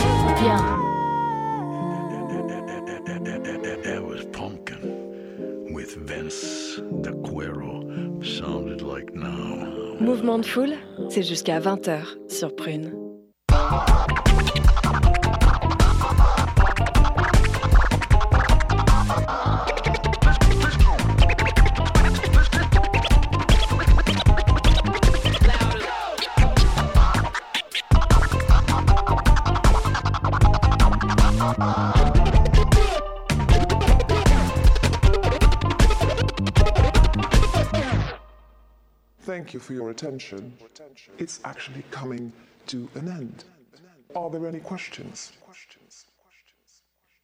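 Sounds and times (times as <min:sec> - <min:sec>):
speech: 0:00.4 - 0:00.8, 0:10.0 - 0:13.0, 0:39.5 - 0:43.5, 0:44.1 - 0:45.8
turntable scratching: 0:13.5 - 0:38.2.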